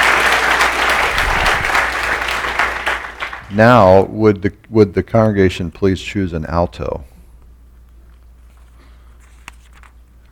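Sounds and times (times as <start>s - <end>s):
audience clapping: 0.0s - 3.9s
speech: 3.6s - 7.1s.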